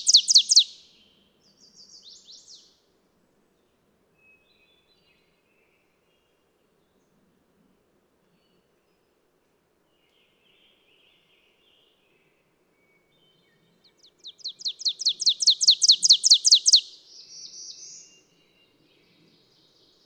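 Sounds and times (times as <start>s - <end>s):
bird singing high downslurred chips: 0.0s - 0.7s, 14.3s - 16.9s.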